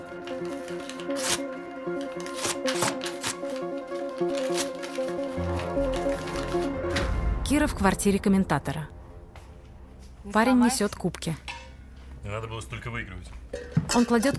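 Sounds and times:
tonal music bed: 0:00.0 - 0:14.3
pages angrily torn out of a notepad and ripped apart: 0:00.2 - 0:07.2
speech: 0:07.6 - 0:09.0, 0:10.3 - 0:11.4, 0:12.2 - 0:14.3.

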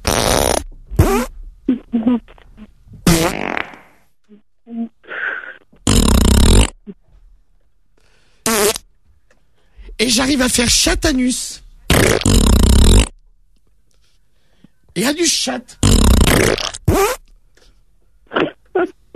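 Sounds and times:
farting sounds made as music: 0:00.0 - 0:07.0, 0:08.4 - 0:08.8, 0:11.9 - 0:13.2, 0:15.8 - 0:17.3, 0:18.3 - 0:19.1
speech: 0:02.0 - 0:02.4, 0:10.1 - 0:11.6, 0:15.0 - 0:16.6.

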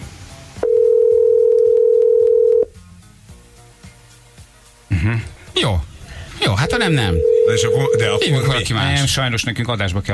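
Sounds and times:
telephone tone while waiting for contest winner to answer: 0:00.6 - 0:02.7, 0:06.6 - 0:08.4
speech: 0:06.8 - 0:10.1.

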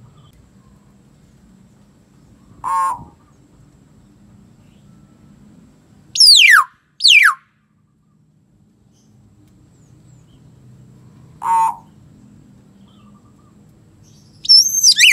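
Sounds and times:
common hill myna giving loud swooping whistles: 0:06.2 - 0:07.4, 0:14.4 - 0:15.1.

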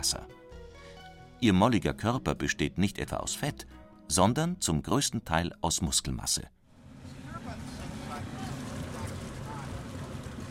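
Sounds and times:
speech: 0:00.0 - 0:00.4, 0:01.4 - 0:06.6
flat excursion boat engine hum moving upriver toward Kings Bay: 0:06.6 - 0:10.4
rushing water: 0:07.2 - 0:10.4.

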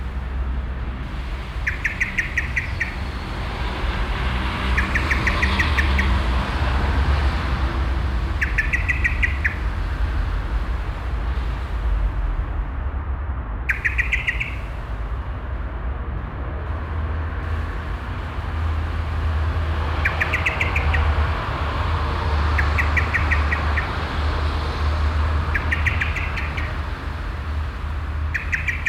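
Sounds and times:
street traffic rumbling: 0:00.0 - 0:28.8
Common Blackbird chattering: 0:01.1 - 0:10.2, 0:13.7 - 0:15.0, 0:17.4 - 0:28.8.

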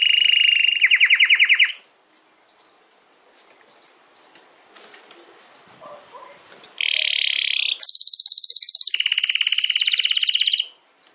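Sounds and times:
domestic canary trilling song: 0:00.0 - 0:02.8, 0:03.6 - 0:04.7, 0:05.4 - 0:11.1
faint rustling: 0:01.8 - 0:06.8.

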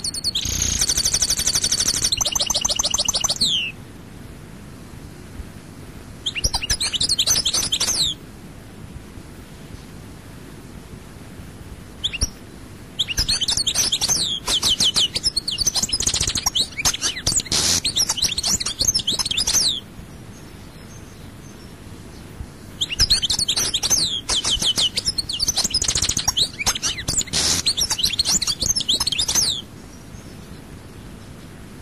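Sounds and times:
European goldfinch song: 0:00.0 - 0:03.8, 0:06.2 - 0:08.2, 0:12.0 - 0:12.4, 0:13.0 - 0:31.6.

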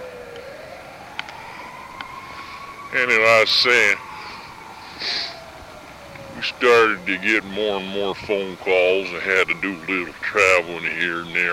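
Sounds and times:
ambulance siren passing by: 0:00.0 - 0:11.5
speech: 0:02.9 - 0:04.1, 0:06.5 - 0:11.5.

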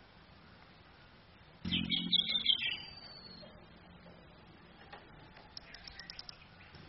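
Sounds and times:
female orange-headed thrush singing played from a phone: 0:01.7 - 0:03.5.

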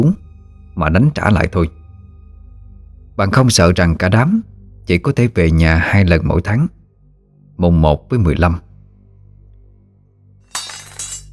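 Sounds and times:
speech: 0:00.0 - 0:00.2, 0:00.8 - 0:01.8, 0:03.2 - 0:06.8, 0:07.6 - 0:08.6
low steady hum: 0:00.0 - 0:11.3
knife dropping onto the ground: 0:10.5 - 0:11.3.

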